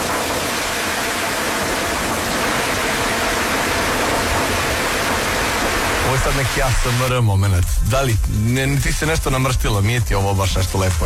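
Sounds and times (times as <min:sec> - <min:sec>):
rain drumming on a window or roof: 0:00.0 - 0:11.0
speech: 0:06.2 - 0:11.0.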